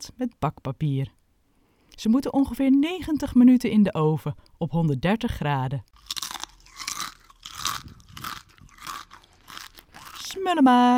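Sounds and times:
speech: 0.2 - 1.2, 2.0 - 6.2, 10.4 - 10.9
crunching crispy homemade oven-baked chips: 6.0 - 10.4.

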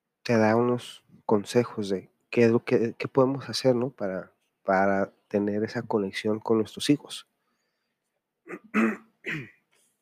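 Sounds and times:
speech: 0.3 - 7.3, 8.5 - 9.6
faint breath: 7.3 - 8.2
person with a dry throat clearing throat: 8.5 - 9.6.

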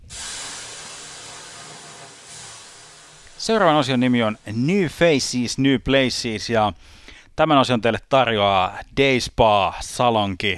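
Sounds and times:
water thrown on hot sauna stones hissing: 0.0 - 5.2
speech: 3.4 - 10.5.

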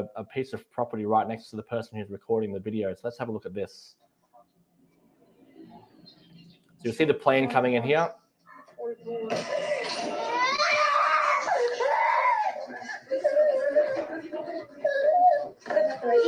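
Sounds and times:
speech: 0.0 - 4.0, 6.8 - 8.2, 8.8 - 10.2, 15.6 - 16.2
laughter: 9.8 - 16.2
child screaming in distress: 10.1 - 12.6.

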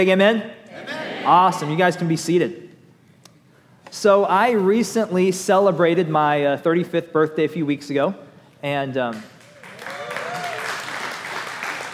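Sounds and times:
speech: 0.0 - 2.6, 3.9 - 9.3
church congregation applauding during a sermon: 9.1 - 11.9.

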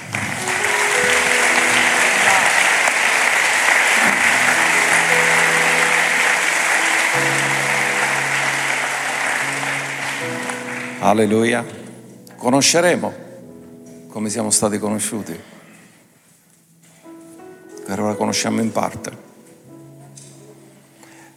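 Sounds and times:
audience applause: 0.0 - 11.5
speech: 11.1 - 11.8, 12.4 - 13.2, 14.1 - 15.6, 18.1 - 19.3.

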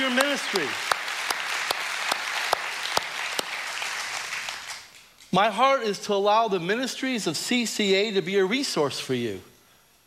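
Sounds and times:
speech: 0.0 - 0.9, 5.3 - 9.5
round of applause: 0.0 - 5.1.

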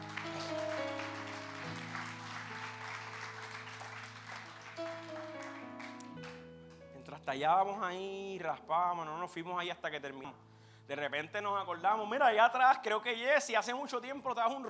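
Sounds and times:
audience applause: 0.0 - 6.8
speech: 7.3 - 14.6.

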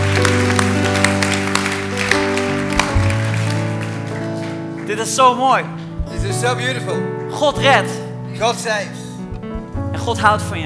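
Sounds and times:
audience applause: 0.0 - 5.4
speech: 4.9 - 9.0, 10.0 - 10.6.

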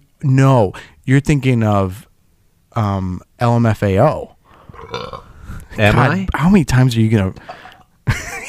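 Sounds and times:
speech: 0.2 - 2.1, 2.8 - 4.4, 4.9 - 8.3
burp: 4.7 - 5.4.

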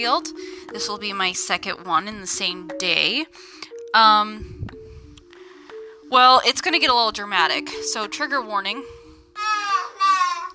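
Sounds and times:
speech: 0.0 - 4.7, 6.1 - 9.0
young child babbling: 9.4 - 10.5.

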